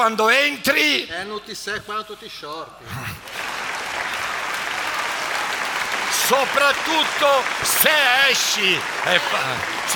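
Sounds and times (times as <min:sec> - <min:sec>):
speech: 0:00.0 - 0:03.3, 0:06.2 - 0:09.9
audience applause: 0:03.2 - 0:09.9.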